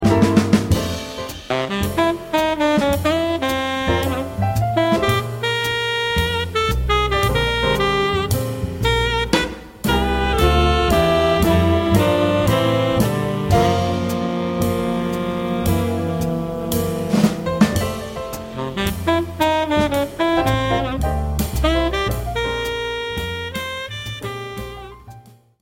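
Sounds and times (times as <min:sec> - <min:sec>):
reeds bridge: 0:00.1 - 0:24.9.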